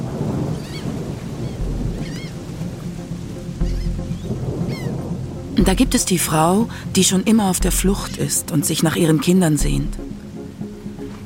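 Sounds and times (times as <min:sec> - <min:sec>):
low thunder rumbling: 0:00.0 - 0:08.4
steady rain hissing on a street at night: 0:00.0 - 0:11.2
faint chirping tones: 0:00.6 - 0:02.5, 0:03.6 - 0:05.3
speech: 0:05.6 - 0:10.2.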